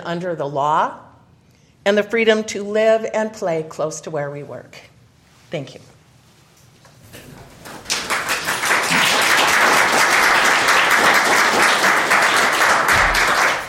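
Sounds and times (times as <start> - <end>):
speech: 0.0 - 1.1, 1.8 - 4.9, 5.5 - 5.9
crowd applause: 7.6 - 13.6.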